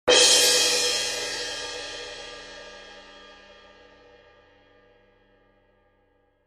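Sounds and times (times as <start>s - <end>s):
18in suspended orchestral cymbal: 0.1s - 4.8s.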